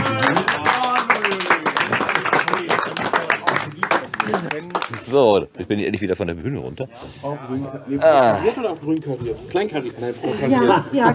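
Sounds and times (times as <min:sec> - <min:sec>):
people cheering: 0:00.0 - 0:04.8
audience applause: 0:00.0 - 0:05.2
speech: 0:05.1 - 0:11.1.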